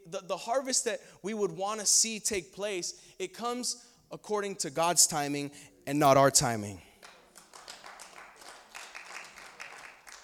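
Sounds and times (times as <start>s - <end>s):
speech: 0.1s - 6.9s
audience clapping: 7.0s - 10.2s.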